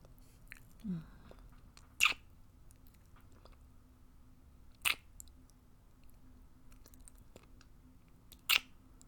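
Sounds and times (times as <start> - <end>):
wet kissing smacks: 8.4 - 8.7.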